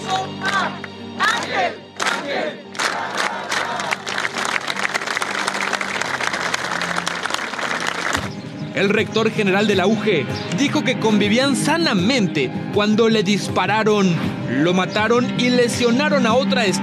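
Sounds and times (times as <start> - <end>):
crowd chanting: 0.0 - 4.3
crowd cheering: 0.4 - 8.3
applause: 0.4 - 8.4
speech: 8.8 - 16.8.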